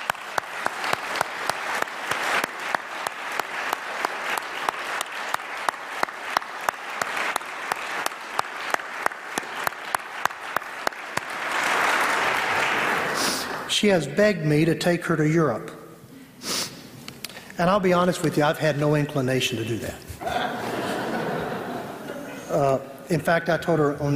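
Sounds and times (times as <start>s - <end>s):
audience applause: 0.0s - 13.7s
speech: 13.8s - 15.8s, 17.6s - 20.1s, 22.5s - 24.1s
laughter: 20.1s - 22.7s.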